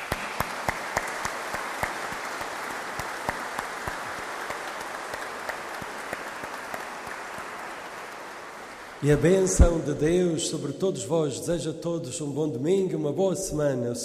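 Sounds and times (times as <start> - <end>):
applause for the choir: 0.0 - 10.2
speech: 9.0 - 14.0.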